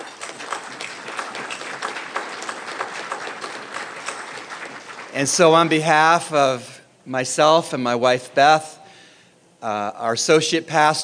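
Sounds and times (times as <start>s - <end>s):
audience applause at a center's 30th anniversary banquet: 0.0s - 5.9s
speech: 5.2s - 8.8s, 9.6s - 11.0s.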